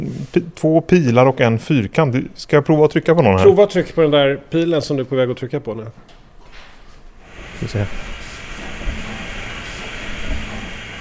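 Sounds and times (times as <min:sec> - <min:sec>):
speech: 0:00.0 - 0:06.2, 0:07.6 - 0:08.1
motorized shelf moving sideways: 0:07.2 - 0:10.9.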